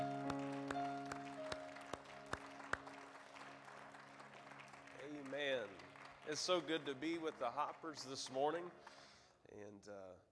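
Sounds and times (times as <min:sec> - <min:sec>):
sustained humming organ-like chord: 0:00.0 - 0:06.6
audience clapping in rhythm in praise: 0:00.0 - 0:09.3
speech: 0:06.3 - 0:10.3.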